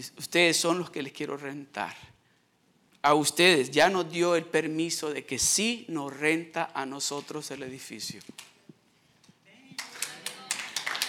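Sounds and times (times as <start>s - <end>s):
speech: 0.0s - 2.2s, 3.0s - 8.5s
audience clapping: 9.7s - 11.0s.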